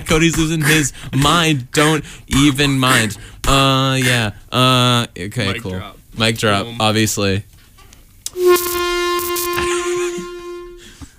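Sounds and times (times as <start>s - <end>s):
speech: 0.1s - 7.6s
air horn blast: 8.3s - 11.1s.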